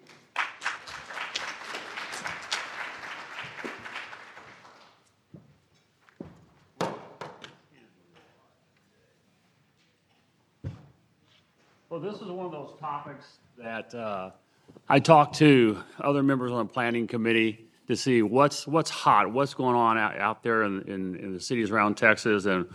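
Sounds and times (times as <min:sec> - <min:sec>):
audience applause welcoming a speaker: 0:00.0 - 0:05.0
thumps and footsteps: 0:05.3 - 0:07.6, 0:10.6 - 0:11.0
speech: 0:12.0 - 0:22.7.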